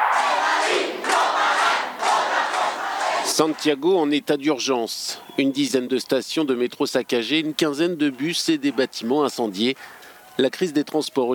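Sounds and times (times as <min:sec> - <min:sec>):
protest crowd chanting at demonstration in Paris: 0:00.0 - 0:03.8
speech: 0:03.4 - 0:11.3.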